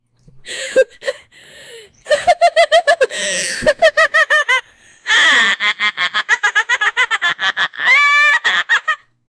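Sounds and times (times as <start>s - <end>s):
witch laughing: 2.0s - 9.1s.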